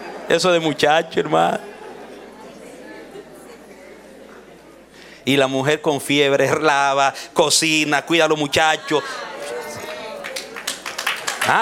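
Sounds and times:
speech: 0:00.3 - 0:01.7, 0:05.2 - 0:09.3, 0:11.4 - 0:11.6
audience clapping: 0:09.2 - 0:11.6.

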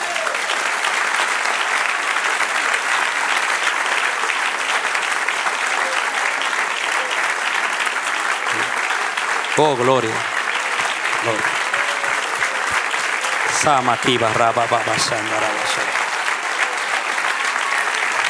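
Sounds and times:
audience applauding: 0:00.0 - 0:18.2
speech: 0:09.6 - 0:10.3, 0:11.2 - 0:11.6, 0:13.6 - 0:15.9.

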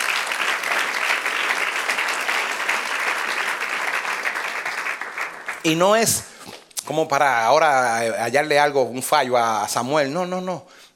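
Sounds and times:
audience applause: 0:00.0 - 0:06.0
speech: 0:05.6 - 0:10.8.

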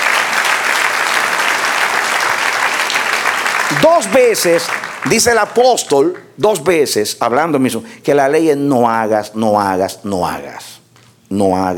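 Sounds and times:
audience applauding: 0:00.0 - 0:06.2
speech: 0:03.8 - 0:11.7.

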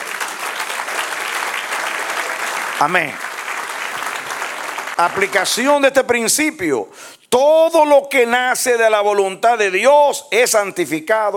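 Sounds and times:
church congregation applauding for the Lord: 0:00.0 - 0:06.0
speech: 0:02.8 - 0:03.3, 0:05.0 - 0:11.3.

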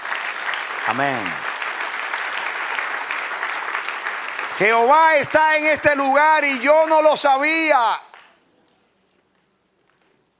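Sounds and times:
audience applauding: 0:00.0 - 0:08.3
speech: 0:00.8 - 0:01.5, 0:04.6 - 0:08.1.

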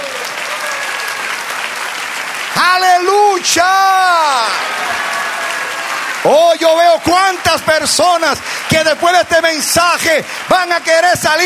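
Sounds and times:
audience applause: 0:00.0 - 0:11.4
speech: 0:02.6 - 0:04.5, 0:06.2 - 0:11.4.

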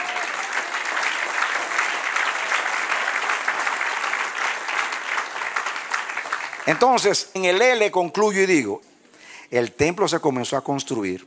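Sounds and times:
audience applause: 0:00.0 - 0:07.0
speech: 0:06.7 - 0:08.9, 0:09.5 - 0:11.2.

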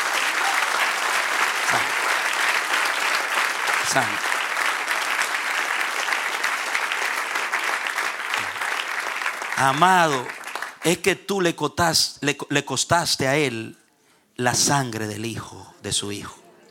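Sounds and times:
audience applause: 0:00.0 - 0:10.8
speech: 0:03.9 - 0:04.3, 0:09.6 - 0:13.8, 0:14.4 - 0:16.4.

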